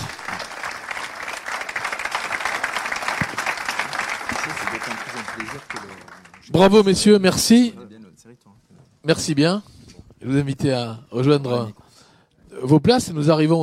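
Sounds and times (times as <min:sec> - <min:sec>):
audience applause: 0:00.0 - 0:06.9
speech: 0:06.6 - 0:07.8, 0:09.1 - 0:11.8, 0:12.6 - 0:13.6.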